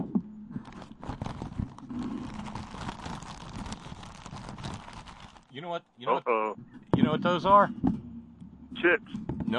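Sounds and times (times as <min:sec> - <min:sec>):
Ziploc plastic zip-top bag being opened, crinkling: 0:00.6 - 0:05.6
speech: 0:05.6 - 0:07.9, 0:08.8 - 0:09.5.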